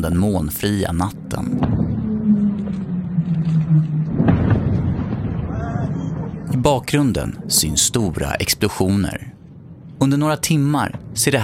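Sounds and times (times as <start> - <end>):
speech: 0.0 - 1.8, 6.7 - 9.4, 10.0 - 11.4
helicopters flying over Caracas at night: 0.0 - 7.7.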